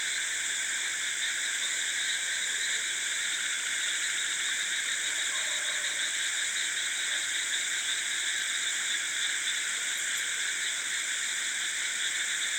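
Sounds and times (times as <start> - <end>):
insects in a rice field in chorus at night: 0.0 - 12.5.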